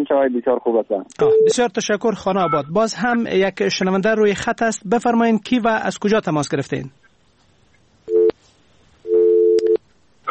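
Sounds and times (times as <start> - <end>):
speech: 0.0 - 7.0
phone busy tone after call disconnected: 1.2 - 1.6, 8.1 - 8.4, 9.1 - 10.2.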